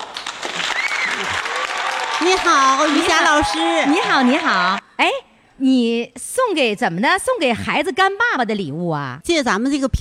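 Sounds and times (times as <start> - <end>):
live audience applause: 0.0 - 4.8
speech: 2.2 - 9.9.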